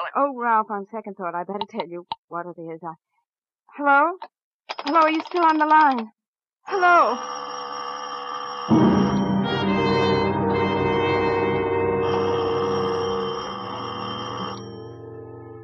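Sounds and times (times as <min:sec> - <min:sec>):
speech: 0:00.1 - 0:07.4
doorbell ringing: 0:07.3 - 0:15.6.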